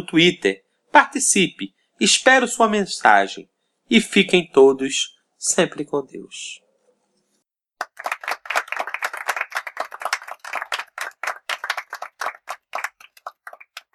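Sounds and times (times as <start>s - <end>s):
speech: 0.0s - 6.6s
applause: 7.8s - 13.9s.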